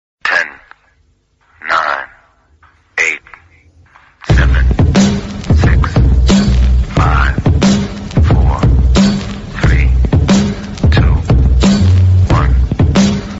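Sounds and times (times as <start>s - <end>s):
birthday song music: 2.6s - 13.3s.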